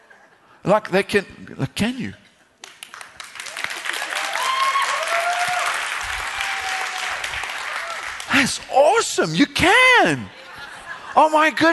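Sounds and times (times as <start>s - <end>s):
speech: 0.6s - 2.2s, 8.4s - 10.4s, 11.1s - 11.7s
audience clapping: 2.6s - 8.7s
laughter: 10.2s - 11.7s.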